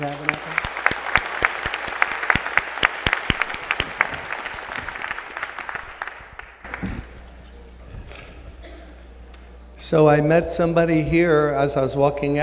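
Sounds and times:
congregation clapping to welcome a guest pastor: 0.0 - 7.5
speech: 9.9 - 12.4.

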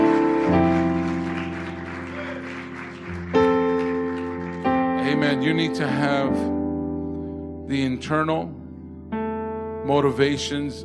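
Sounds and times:
audience applause: 0.0 - 5.6
organ or keyboard chords: 0.0 - 10.8
speech: 5.2 - 6.6, 7.7 - 8.6, 9.9 - 10.8.

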